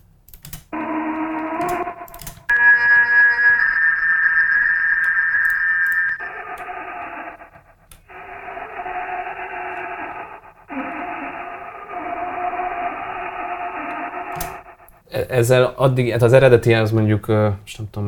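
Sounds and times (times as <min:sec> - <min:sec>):
pitched-down heavily processed drill sounds: 0:00.8 - 0:14.9
steady high whine: 0:00.8 - 0:15.0
speech: 0:15.3 - 0:18.0.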